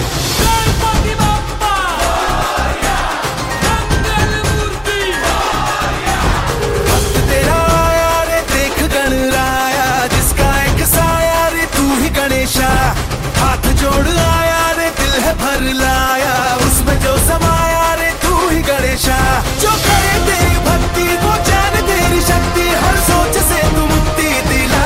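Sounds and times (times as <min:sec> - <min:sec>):
devotional drum band song: 0:00.0 - 0:24.8.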